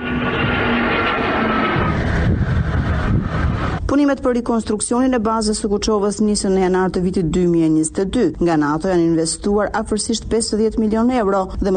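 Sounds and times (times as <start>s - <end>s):
Black Hawk helicopters, Bayraktar drones and Eurofighter jets flying over Kuçova air base: 0.0s - 3.9s
speech: 4.0s - 11.7s.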